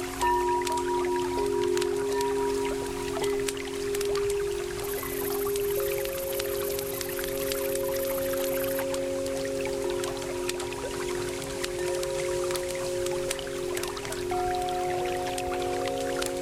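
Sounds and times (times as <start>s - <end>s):
singing bowls in a sleepy night soundscape: 0.0s - 16.4s.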